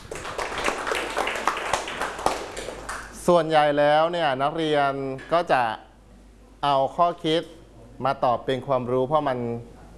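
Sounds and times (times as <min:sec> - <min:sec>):
classroom of students clapping for a classmate: 0:00.0 - 0:03.2
speech: 0:03.2 - 0:05.9, 0:06.6 - 0:09.7.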